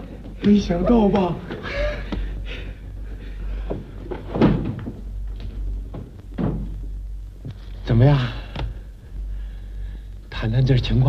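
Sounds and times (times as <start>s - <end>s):
speech: 0.4s - 2.0s, 8.0s - 8.4s, 10.5s - 11.0s
door opening or closing: 4.1s - 5.0s, 5.9s - 6.8s.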